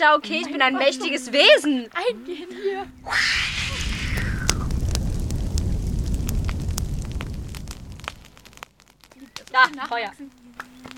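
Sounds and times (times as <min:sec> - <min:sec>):
speech: 0:00.0 - 0:03.6, 0:09.5 - 0:10.4
dragon making fire: 0:02.8 - 0:09.1.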